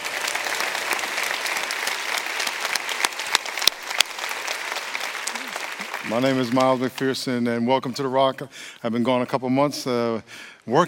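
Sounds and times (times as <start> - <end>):
large crowd applauding in a church service: 0.0 - 7.3
speech: 6.0 - 10.8.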